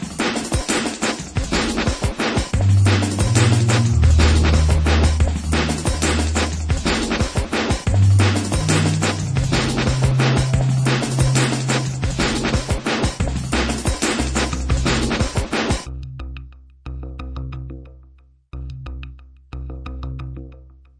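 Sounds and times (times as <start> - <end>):
drum: 0.0 - 15.9.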